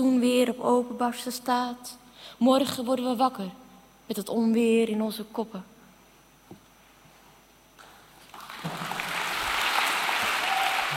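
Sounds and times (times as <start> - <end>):
speech: 0.0 - 5.7
applause: 7.8 - 10.9.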